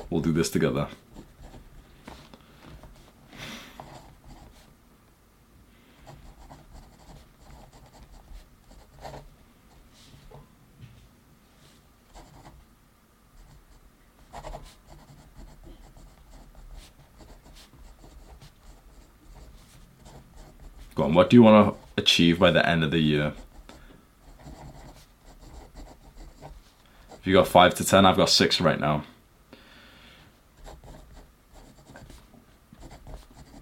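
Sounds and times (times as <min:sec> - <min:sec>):
speech: 0:00.1 - 0:01.1, 0:21.3 - 0:23.4, 0:27.3 - 0:29.2
pen writing by hand: 0:00.9 - 0:01.7, 0:03.8 - 0:04.7, 0:06.0 - 0:09.3, 0:12.1 - 0:12.6, 0:13.4 - 0:20.9, 0:23.3 - 0:27.4, 0:30.6 - 0:33.6.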